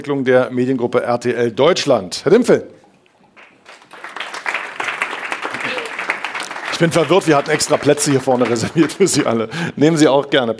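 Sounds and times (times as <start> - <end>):
speech: 0.0 - 2.8, 6.8 - 10.5
audience applause: 3.4 - 9.5.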